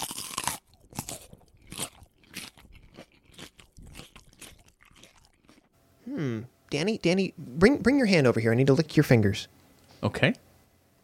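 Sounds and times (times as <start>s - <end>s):
teeth biting and chewing crunchy food: 0.0s - 5.7s
speech: 6.1s - 10.5s.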